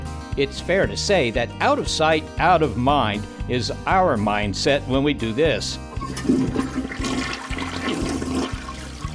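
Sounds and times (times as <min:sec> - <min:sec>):
speech: 0:00.4 - 0:07.4
toilet flushing whoosh: 0:05.9 - 0:09.1.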